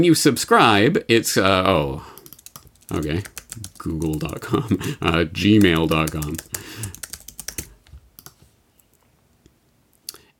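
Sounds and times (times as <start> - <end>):
speech: 0.0 - 2.2, 2.9 - 7.0
email address being typed on a computer keyboard: 2.2 - 8.4.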